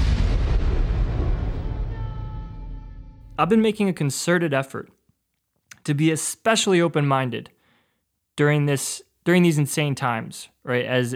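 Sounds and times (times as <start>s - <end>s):
thunder from an approaching storm: 0.0s - 3.3s
speech: 3.4s - 5.0s, 5.8s - 7.6s, 8.4s - 11.1s.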